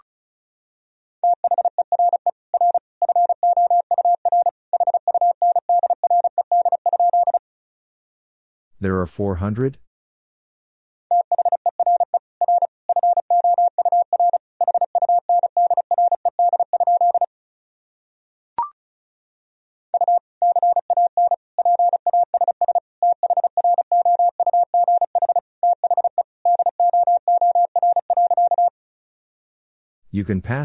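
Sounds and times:
Morse code tones at 35 words per minute: 1.3s - 7.4s, 11.1s - 17.3s, 20.0s - 28.7s
speech: 8.8s - 9.9s, 30.2s - 30.6s.

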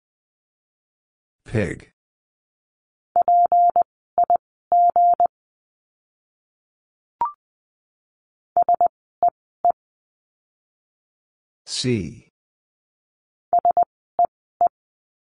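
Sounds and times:
speech: 1.5s - 2.0s, 11.8s - 12.2s
Morse code tones at 20 wpm: 3.2s - 5.3s, 8.6s - 8.9s, 13.6s - 14.3s.

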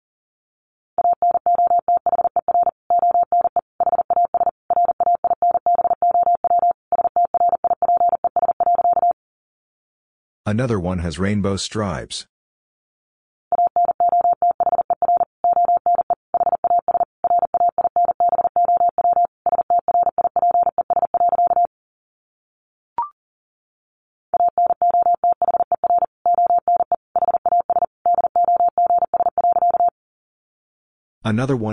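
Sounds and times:
fast Morse code tones: 1.0s - 9.2s, 13.5s - 21.7s, 24.4s - 29.9s
speech: 10.5s - 12.3s, 31.3s - 31.7s.

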